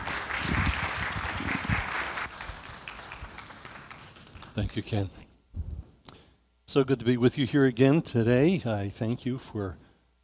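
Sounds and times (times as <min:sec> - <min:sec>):
audience applause: 0:00.0 - 0:04.7
speech: 0:04.6 - 0:05.2, 0:06.7 - 0:09.8.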